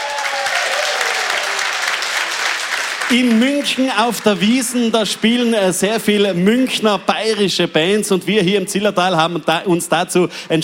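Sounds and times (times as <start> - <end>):
audience applause in a packed festival tent: 0.0 - 5.5
speech: 3.1 - 10.6.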